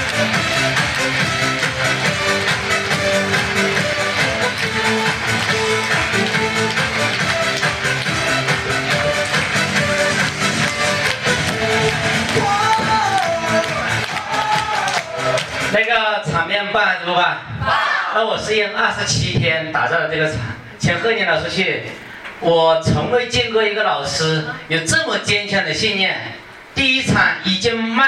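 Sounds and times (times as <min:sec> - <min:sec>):
audience applause: 0:00.0 - 0:15.7
music playing: 0:00.0 - 0:15.9
speech: 0:16.7 - 0:28.0.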